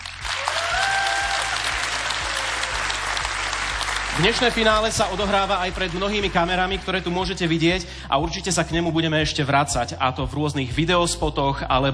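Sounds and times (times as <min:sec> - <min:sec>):
audience applause: 0:00.0 - 0:07.0
speech: 0:04.2 - 0:11.9.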